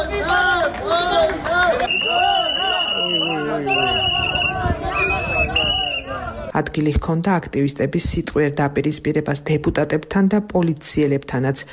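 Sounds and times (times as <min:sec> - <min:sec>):
protesters in a Batumi street shouting and chanting: 0:00.0 - 0:06.6
speech: 0:06.6 - 0:11.7.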